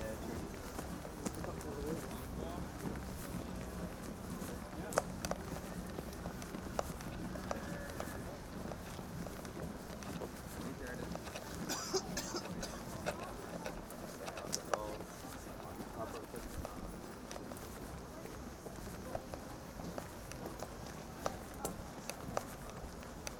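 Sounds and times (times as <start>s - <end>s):
Glastonbury crowd murmur: 0.0s - 23.3s
footsteps on a night walk at Glastonbury: 0.0s - 23.3s.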